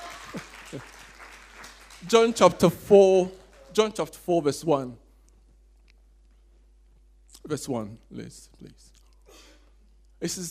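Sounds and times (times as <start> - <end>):
audience applause: 0.0 - 4.0
speech: 0.3 - 1.0, 2.0 - 5.0, 7.4 - 8.9, 10.2 - 10.4.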